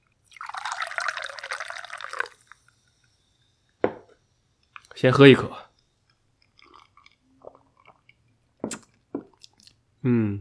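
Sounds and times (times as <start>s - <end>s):
liquid pouring from a freshly opened whiskey bottle: 0.2s - 2.8s
speech: 5.0s - 5.6s.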